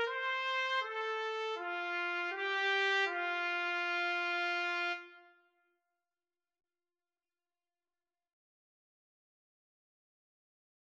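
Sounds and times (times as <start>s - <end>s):
trumpet and trombone duet: 0.0s - 5.3s.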